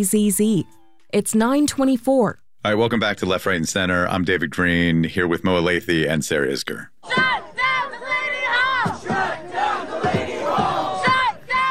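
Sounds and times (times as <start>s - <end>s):
speech: 0.0s - 6.9s
protesters chanting and shouting outside Delaney Hall ICE detention center in Newark: 7.0s - 11.6s.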